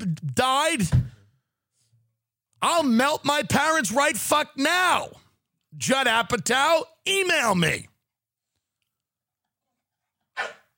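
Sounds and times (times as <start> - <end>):
speech: 0.1 - 1.2, 2.6 - 7.9
dog barking: 10.4 - 10.7.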